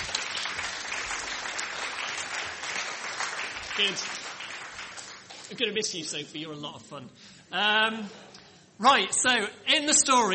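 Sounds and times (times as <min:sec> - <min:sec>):
group clapping: 0:00.0 - 0:05.8
speech: 0:03.8 - 0:04.2, 0:05.5 - 0:10.3.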